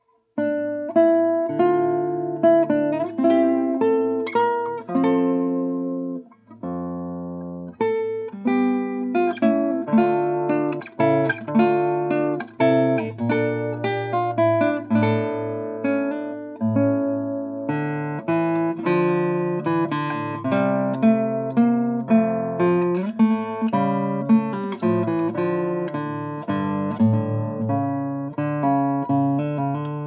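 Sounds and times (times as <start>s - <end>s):
guitar: 0.0s - 30.0s.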